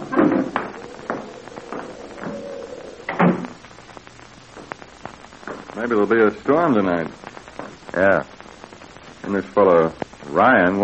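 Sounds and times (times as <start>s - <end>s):
door shutting: 3.1s - 3.6s
speech: 5.8s - 7.4s, 8.0s - 8.3s, 9.2s - 10.8s.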